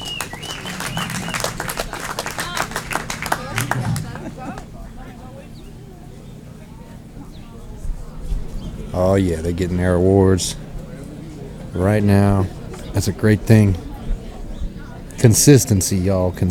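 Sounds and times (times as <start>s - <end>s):
audience applause: 0.0s - 4.8s
laughter: 0.0s - 6.7s
speech: 9.0s - 10.6s, 11.7s - 13.8s, 15.2s - 16.4s.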